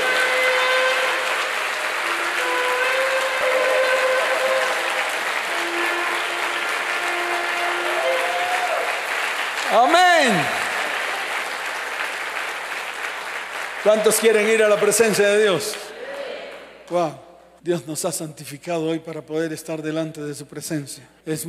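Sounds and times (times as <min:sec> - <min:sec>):
audience giving loud applause: 0:00.0 - 0:15.9
speech: 0:13.8 - 0:15.8, 0:16.9 - 0:21.4.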